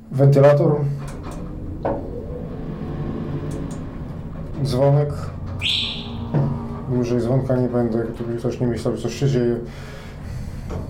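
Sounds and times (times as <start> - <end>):
speech: 0.1 - 1.2, 4.6 - 10.0
elevator doors opening: 0.6 - 8.8.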